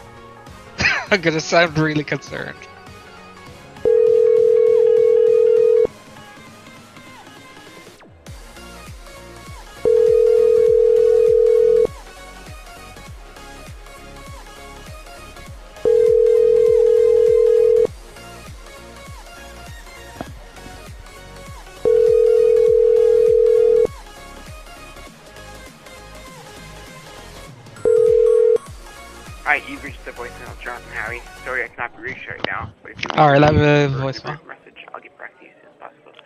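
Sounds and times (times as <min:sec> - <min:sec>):
speech: 0:01.1 - 0:02.7, 0:33.2 - 0:34.4
ringback tone of an outgoing phone call: 0:03.8 - 0:05.9, 0:09.8 - 0:11.9, 0:15.8 - 0:17.9, 0:21.8 - 0:23.9, 0:27.8 - 0:28.7.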